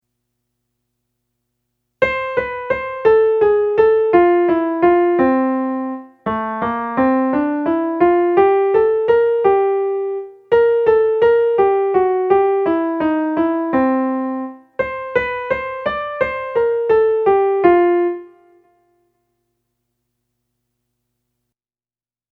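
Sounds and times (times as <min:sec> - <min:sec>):
Mexican folk dance tune: 0:02.0 - 0:18.4.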